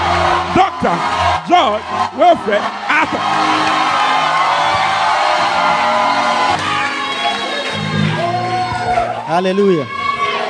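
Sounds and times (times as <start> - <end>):
church congregation shouting and cheering: 0.0 - 10.4
speech: 0.5 - 4.0, 9.3 - 10.0.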